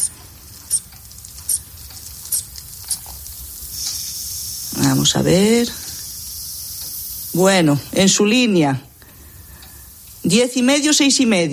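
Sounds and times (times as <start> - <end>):
blood pressure cuff pump inflating around a thin arm: 0.0 - 8.0, 8.9 - 10.3
soft hiss: 2.5 - 11.5
speech: 4.8 - 5.8, 7.4 - 8.9, 10.3 - 11.5.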